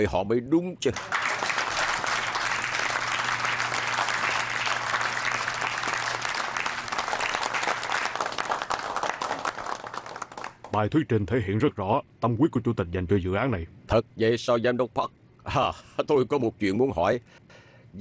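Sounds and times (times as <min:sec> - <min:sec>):
speech: 0:00.0 - 0:01.2, 0:10.8 - 0:17.9
audience applause after a presentation: 0:01.0 - 0:10.7.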